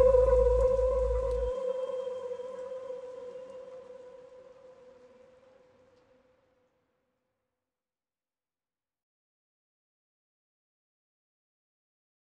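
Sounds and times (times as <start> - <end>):
instrumental music: 0.0 - 3.2.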